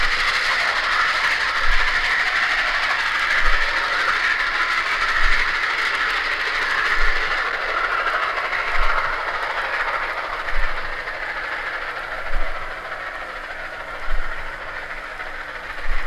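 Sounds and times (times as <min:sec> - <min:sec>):
K4s steam locomotive sounds: 0:00.0 - 0:16.0.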